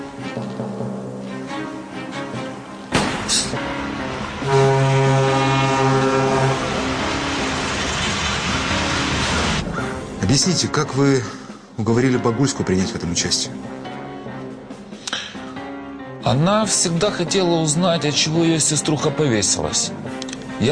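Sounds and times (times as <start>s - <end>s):
train passing by: 0.0s - 12.0s
speech: 10.4s - 13.9s, 16.3s - 20.6s.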